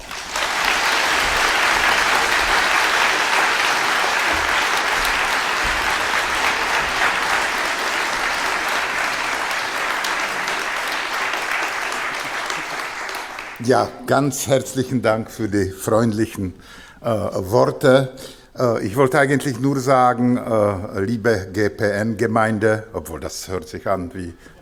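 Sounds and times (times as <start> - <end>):
audience applause: 0.0 - 13.8
speech: 13.6 - 24.5.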